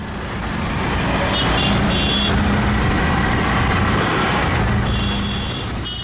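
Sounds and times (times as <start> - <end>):
crowded New Delhi street traffic roaring: 0.0 - 6.0
car horns honking: 1.3 - 2.5, 4.8 - 6.0.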